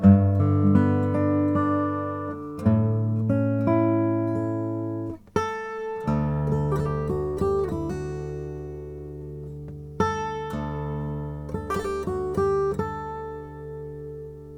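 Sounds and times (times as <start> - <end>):
Lowden guitar playing: 0.0 - 14.5.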